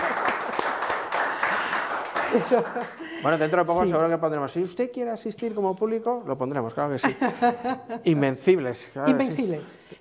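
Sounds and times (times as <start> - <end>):
crowd applause: 0.0 - 3.5
laughter: 2.1 - 3.5, 6.9 - 8.2
speech: 2.3 - 9.8.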